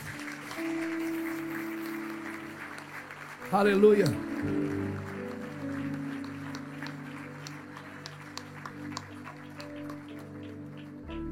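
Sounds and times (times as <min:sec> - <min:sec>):
audience applause: 0:00.0 - 0:11.3
speech: 0:03.5 - 0:04.7.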